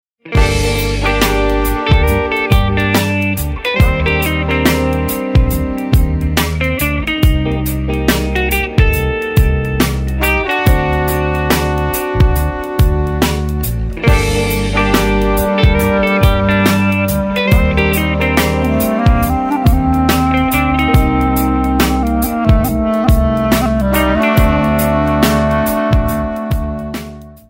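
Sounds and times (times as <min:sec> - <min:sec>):
melody: 0:00.4 - 0:27.2.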